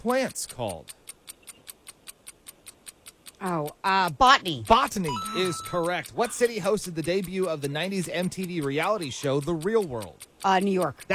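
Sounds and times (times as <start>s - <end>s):
speech: 0.0s - 1.0s, 3.4s - 11.1s
quiz game show countdown clock ticking: 0.0s - 11.1s.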